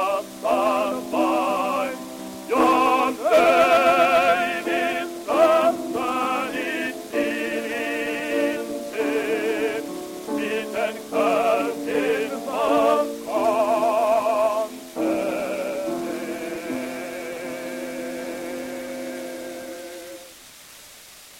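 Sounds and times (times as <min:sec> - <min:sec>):
gramophone playing: 0:00.0 - 0:16.7.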